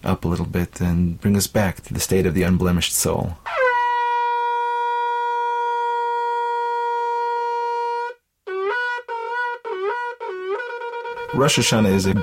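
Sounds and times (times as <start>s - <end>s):
speech: 0.2s - 3.6s, 11.3s - 12.2s
shofar being blown: 3.4s - 12.2s.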